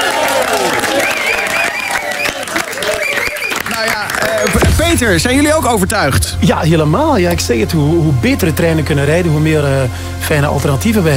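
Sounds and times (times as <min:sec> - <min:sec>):
audience applause: 0:00.0 - 0:06.2
speech: 0:04.9 - 0:11.1.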